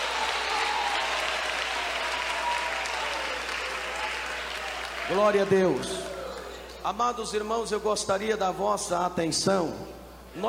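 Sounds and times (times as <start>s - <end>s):
audience clapping hands: 0.0s - 6.8s
speech: 5.1s - 6.2s, 6.8s - 10.4s.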